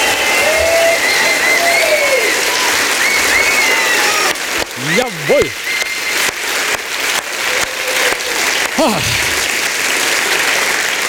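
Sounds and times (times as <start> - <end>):
crowd applause in club: 0.0 - 11.0
whistle: 0.2 - 4.0, 5.6 - 6.3.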